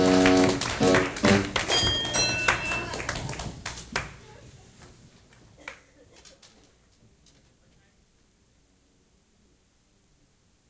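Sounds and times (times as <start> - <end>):
audience: 0.0 - 6.8.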